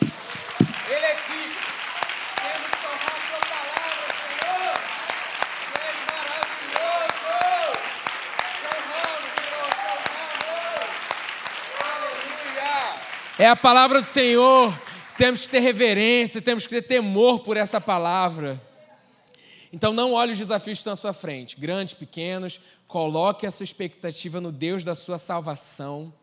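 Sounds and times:
audience applause: 0.0 - 16.0
speech: 13.4 - 18.7, 19.7 - 26.2.

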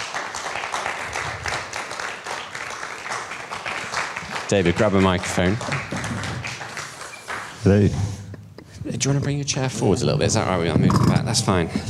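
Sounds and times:
audience applause: 0.0 - 7.7
speech: 4.5 - 5.9, 7.6 - 8.2, 8.9 - 11.8.

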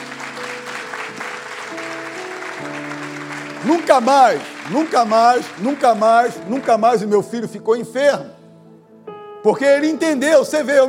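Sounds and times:
crowd applauding: 0.0 - 7.1
speech: 3.6 - 8.4, 9.4 - 10.8.

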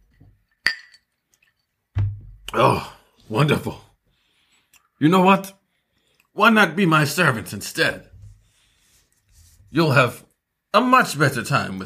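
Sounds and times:
glass or dishware clinking: 0.4 - 1.8
dull knock: 2.0 - 2.5
speech: 2.5 - 3.9, 5.0 - 5.6, 6.4 - 8.1, 9.7 - 11.8.

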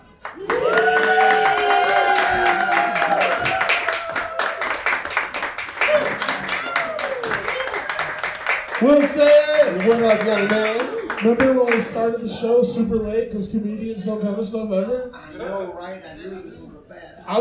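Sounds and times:
audience clapping: 0.0 - 12.1
speech: 8.9 - 17.3.

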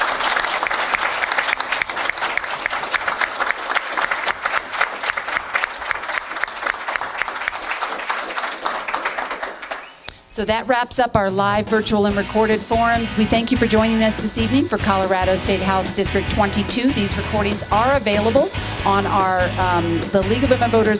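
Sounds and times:
audience applause for candidates: 0.0 - 10.1
speech: 10.4 - 20.9.

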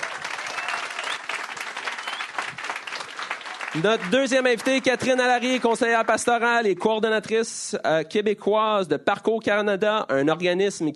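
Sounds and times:
crowd applause for a guest: 0.0 - 6.4
speech: 3.8 - 10.9.

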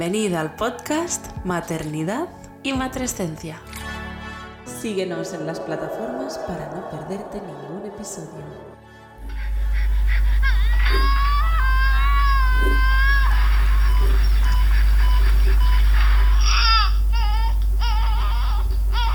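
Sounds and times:
speech: 0.0 - 3.8, 4.8 - 8.8
laughter: 5.2 - 19.1
newborn crying in staged childbirth recording: 9.4 - 19.1.

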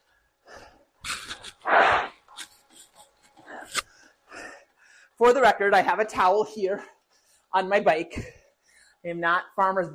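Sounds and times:
person blowing their nose: 1.1 - 2.5
speech: 5.2 - 8.4, 9.0 - 9.9.

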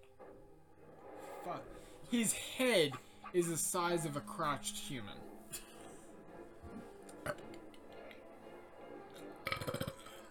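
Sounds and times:
speech: 1.4 - 5.4
small burp: 7.2 - 7.6, 9.4 - 10.2.

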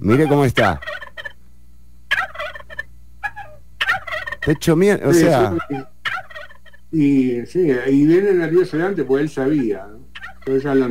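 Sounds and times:
speech: 0.0 - 1.0, 4.4 - 5.9, 6.9 - 10.8
turkey gobbling: 0.1 - 1.4, 2.1 - 6.9, 10.1 - 10.8.

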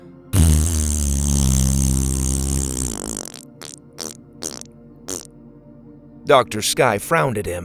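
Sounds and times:
person blowing a loud raspberry: 0.4 - 5.3
speech: 6.3 - 7.6.

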